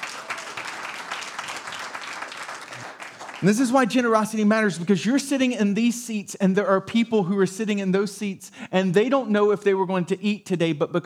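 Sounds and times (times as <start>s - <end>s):
audience applause: 0.0s - 4.1s
speech: 3.4s - 11.0s.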